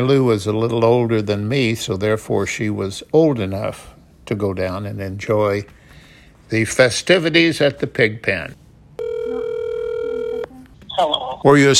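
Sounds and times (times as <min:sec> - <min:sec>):
speech: 0:00.0 - 0:05.8, 0:06.5 - 0:08.6, 0:11.0 - 0:11.7
telephone ringing: 0:09.0 - 0:10.5.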